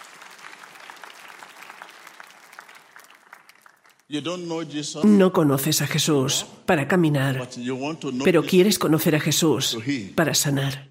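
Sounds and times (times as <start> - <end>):
audience applause: 0.0 - 4.1
speech: 4.1 - 10.9.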